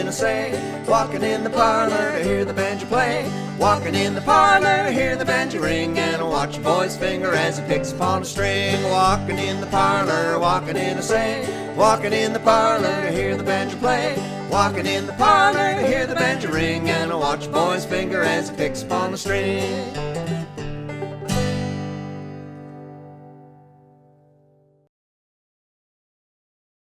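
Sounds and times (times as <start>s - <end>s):
lead vocal: 0.0s - 20.2s
two-finger seconding style banjo: 0.0s - 24.2s
guitar: 0.0s - 24.9s.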